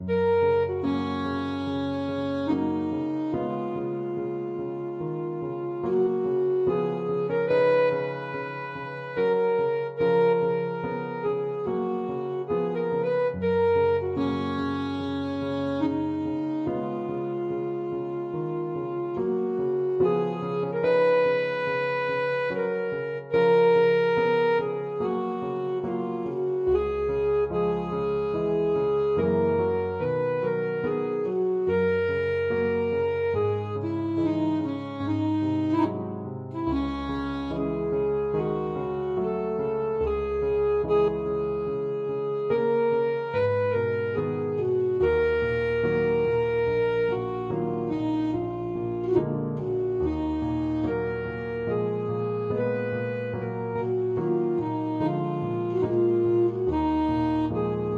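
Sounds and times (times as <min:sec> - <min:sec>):
saxophone: 0:00.0 - 0:57.9.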